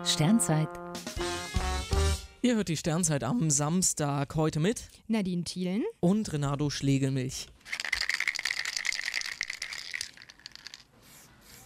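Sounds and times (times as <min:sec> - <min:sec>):
speech: 0:00.0 - 0:00.8, 0:02.4 - 0:07.6
spray paint can shaken with mixing ball rattling: 0:07.6 - 0:11.0.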